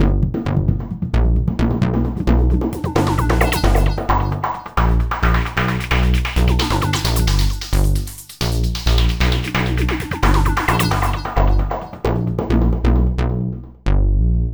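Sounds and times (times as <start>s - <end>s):
hardcore breakbeat music in G minor: 0.0s - 13.2s.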